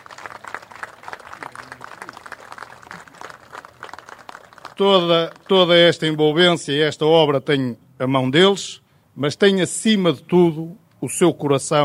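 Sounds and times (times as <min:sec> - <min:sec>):
audience applause: 0:00.0 - 0:05.5
speech: 0:04.8 - 0:11.8.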